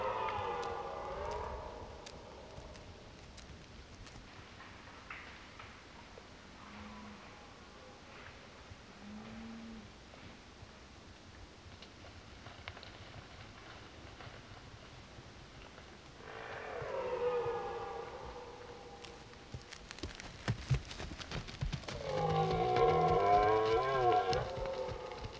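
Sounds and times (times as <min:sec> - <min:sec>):
red deer roaring: 0:00.0 - 0:02.8, 0:16.2 - 0:19.4, 0:22.0 - 0:25.3.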